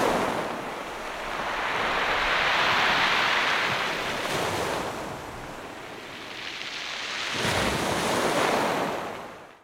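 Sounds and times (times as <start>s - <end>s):
Mediterranean ocean waves crashing onto stony beach: 0.0s - 9.4s.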